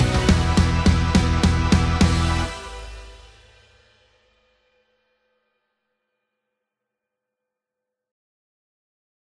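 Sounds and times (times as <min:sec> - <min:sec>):
instrumental cover music: 0:00.0 - 0:04.3.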